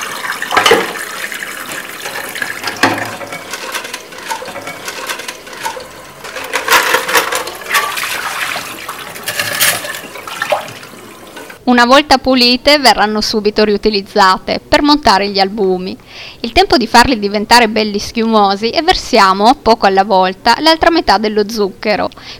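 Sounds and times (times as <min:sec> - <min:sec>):
running kitchen tap: 0:00.0 - 0:11.6
kitchen whisks clinking and rattling under a tap: 0:02.0 - 0:08.6
speech: 0:11.7 - 0:22.3.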